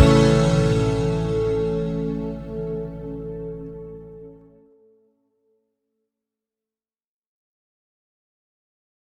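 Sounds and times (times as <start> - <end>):
slow banjo backing track: 0.0 - 3.9.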